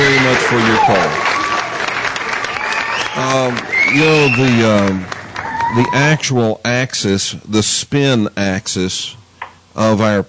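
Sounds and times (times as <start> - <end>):
crowd applauding: 0.0 - 6.2
speech: 0.5 - 1.3, 3.2 - 9.2, 9.8 - 10.2.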